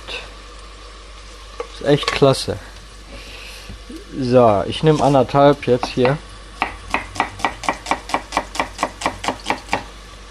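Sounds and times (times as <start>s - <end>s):
speech: 1.8s - 2.7s, 4.2s - 6.3s
knife finely chopping food on a board: 5.8s - 9.9s.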